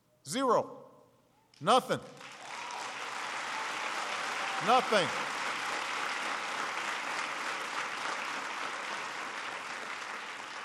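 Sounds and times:
speech: 0.3 - 0.8, 1.6 - 2.2, 4.6 - 5.3
audience clapping: 2.1 - 10.6.

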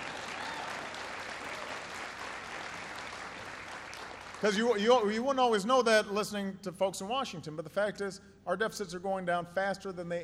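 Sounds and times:
audience applause: 0.0 - 4.7
speech: 4.4 - 10.2.

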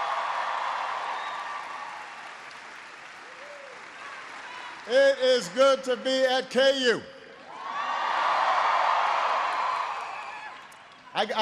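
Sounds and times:
audience applause: 0.0 - 5.5, 7.6 - 11.0
speech: 4.9 - 7.1, 11.2 - 11.4.

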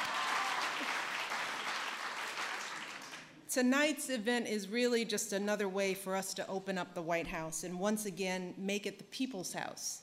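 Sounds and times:
audience applause: 0.0 - 3.3
speech: 3.6 - 10.0.

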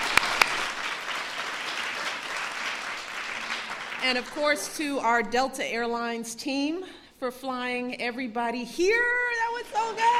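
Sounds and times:
crowd applauding: 0.0 - 4.7
speech: 4.0 - 9.2, 9.8 - 10.1.

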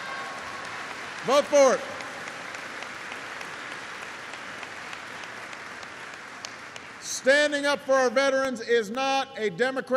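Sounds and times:
crowd applause: 0.0 - 7.6
speech: 1.2 - 1.9, 7.2 - 9.9.

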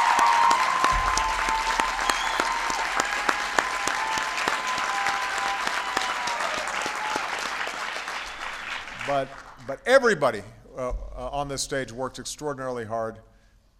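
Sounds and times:
crowd applause: 0.0 - 9.6
speech: 9.1 - 13.3.

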